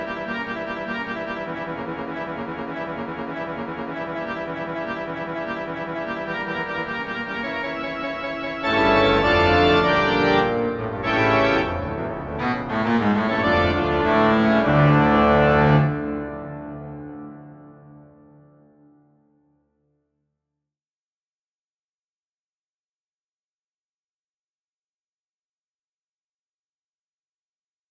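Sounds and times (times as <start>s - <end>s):
organ: 0.0s - 17.6s.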